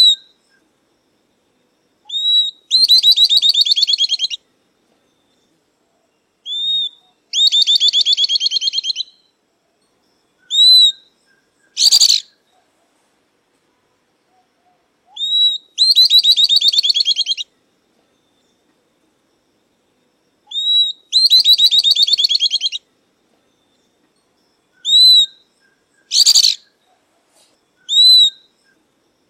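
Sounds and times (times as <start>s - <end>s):
southern beardless-tyrannulet song: 2.1s - 4.4s, 6.5s - 9.3s, 10.4s - 12.4s, 15.1s - 17.5s, 20.5s - 22.8s, 24.8s - 25.4s, 26.0s - 28.5s.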